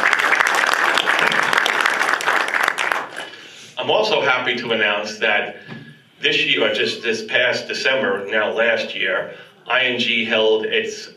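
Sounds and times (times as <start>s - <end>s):
crowd applause: 0.0s - 3.4s
speech: 3.9s - 11.1s.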